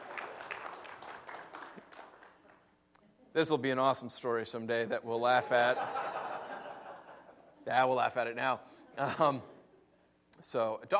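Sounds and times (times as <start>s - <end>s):
audience applause: 0.0s - 2.6s
speech: 3.4s - 6.2s, 7.7s - 9.5s, 10.4s - 10.9s
laughter: 5.3s - 7.6s, 8.9s - 10.0s.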